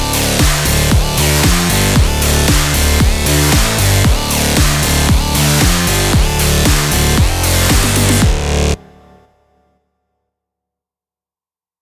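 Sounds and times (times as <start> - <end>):
aggressive energetic electronic sport music: 0.0 - 9.3.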